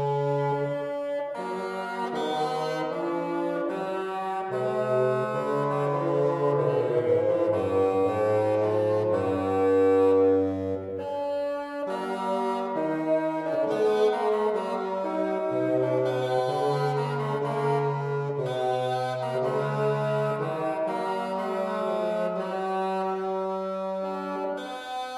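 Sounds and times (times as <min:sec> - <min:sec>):
tenor bassanello: 0:00.0 - 0:25.1.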